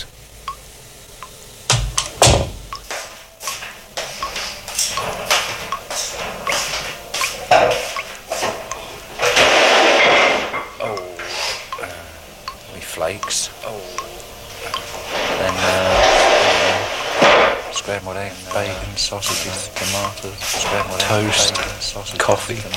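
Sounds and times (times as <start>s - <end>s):
water dripping: 0.0s - 17.0s, 17.6s - 22.7s
man walking into a room: 1.7s - 11.7s, 18.5s - 22.7s
speech: 19.0s - 22.7s.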